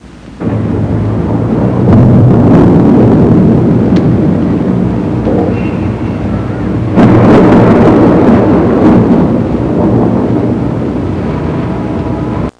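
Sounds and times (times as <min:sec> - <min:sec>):
distant thunder: 0:00.2 - 0:12.5.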